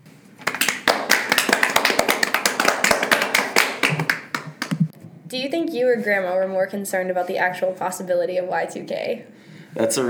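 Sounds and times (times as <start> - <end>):
small group clapping to welcome a guest: 0.4 - 4.9
speech: 5.3 - 10.0.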